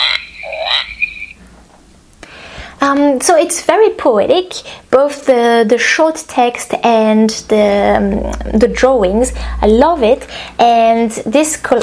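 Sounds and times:
frog croak from a children's sound book button: 0.0s - 1.4s
speech: 2.9s - 11.8s.

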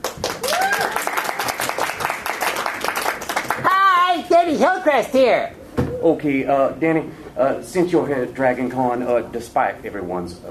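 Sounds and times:
audience applause: 0.0s - 3.8s
speech: 4.4s - 10.4s.

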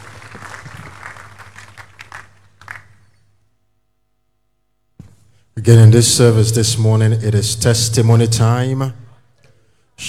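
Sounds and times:
audience applause: 0.0s - 3.0s
speech: 5.6s - 9.0s.

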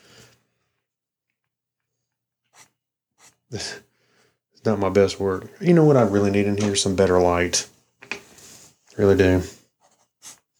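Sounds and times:
pencil drawing on paper: 2.4s - 3.5s, 9.3s - 10.5s
speech: 3.5s - 3.9s, 4.6s - 7.8s, 9.0s - 9.6s.

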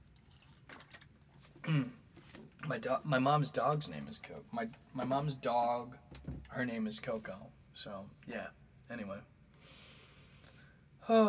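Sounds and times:
person sipping Vita Coco coconut water: 0.2s - 2.6s
speech: 1.7s - 2.0s, 2.7s - 9.3s, 11.1s - 11.2s.

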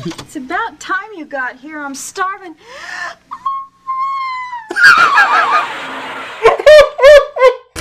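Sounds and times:
speech: 0.0s - 3.2s, 4.8s - 7.1s
woman's feeble attempted scream: 3.9s - 5.3s.

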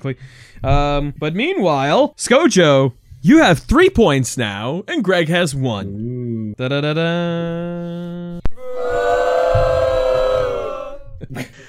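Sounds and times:
speech: 0.0s - 8.5s, 11.2s - 11.6s
audience booing: 8.6s - 11.1s.

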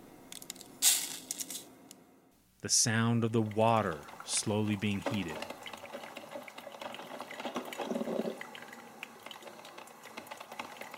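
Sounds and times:
speech: 2.6s - 5.6s
coffee grounds scooped and poured into a filter: 3.5s - 8.6s.

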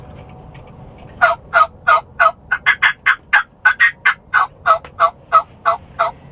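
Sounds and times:
turkey mouth call yelps: 1.2s - 6.2s.

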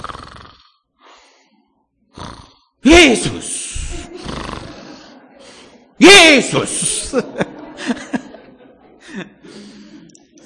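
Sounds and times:
person imitating snoring while praying: 0.0s - 0.8s, 2.1s - 2.8s, 3.7s - 4.8s
speech: 2.8s - 3.6s, 6.2s - 8.1s
laughter: 3.1s - 10.4s.

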